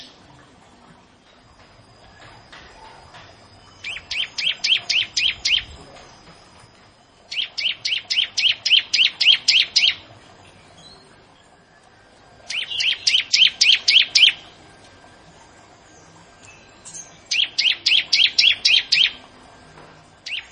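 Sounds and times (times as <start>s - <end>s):
bar-winged prinia song: 2.0s - 6.4s, 7.2s - 14.6s, 15.8s - 19.3s, 20.2s - 20.4s.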